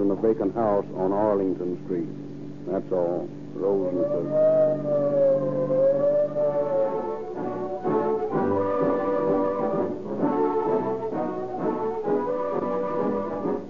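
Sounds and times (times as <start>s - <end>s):
speech: 0.2s - 6.8s
siren wailing: 3.6s - 13.6s.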